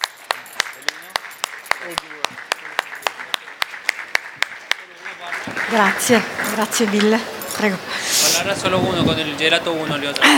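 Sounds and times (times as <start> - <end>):
audience applause: 0.0 - 7.4
speech: 1.8 - 2.5, 5.6 - 10.3.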